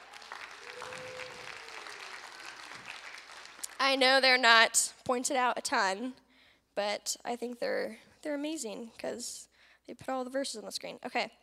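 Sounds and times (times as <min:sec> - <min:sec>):
audience applause: 0:00.0 - 0:03.8
speech: 0:03.8 - 0:06.2, 0:06.8 - 0:11.4.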